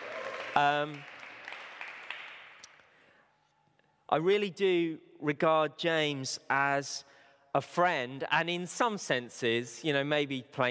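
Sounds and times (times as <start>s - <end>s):
crowd applause and cheering: 0.0s - 2.8s
speech: 0.6s - 1.1s, 4.1s - 10.6s.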